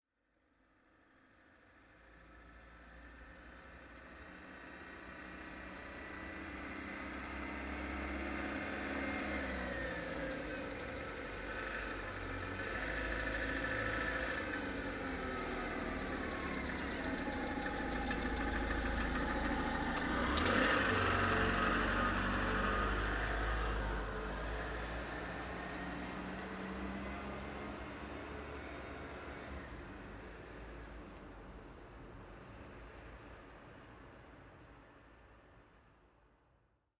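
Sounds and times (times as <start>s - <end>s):
electric car approaching and moving past: 5.3s - 34.7s.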